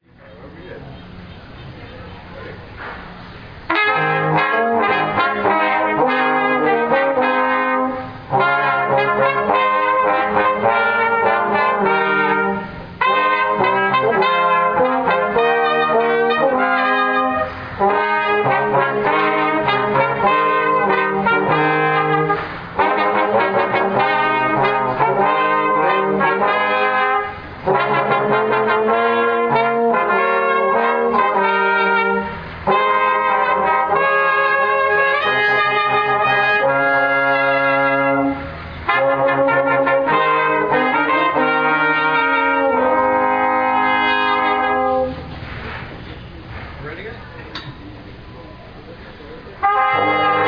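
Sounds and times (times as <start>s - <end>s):
brass music: 2.4s - 45.9s, 49.5s - 50.4s.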